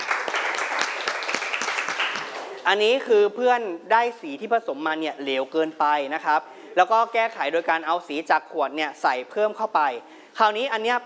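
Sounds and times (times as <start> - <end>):
children in class applauding a classmate: 0.0 - 2.6
speech: 2.7 - 11.0.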